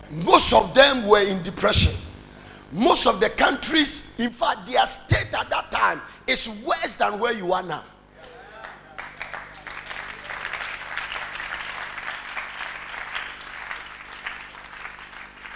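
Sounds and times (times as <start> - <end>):
speech: 0.1 - 2.0, 2.7 - 7.9
audience clapping: 8.2 - 15.5.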